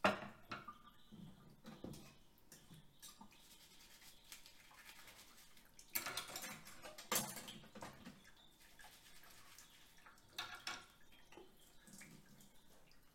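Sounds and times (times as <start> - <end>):
plates, cutlery and pans clattering: 0.0 - 0.8, 6.0 - 8.2, 10.4 - 10.9
running water: 0.0 - 13.1.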